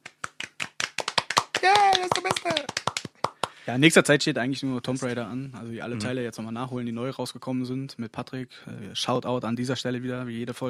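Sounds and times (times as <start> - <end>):
hand clapping: 0.0 - 3.7
speech: 1.6 - 2.8, 3.7 - 10.6.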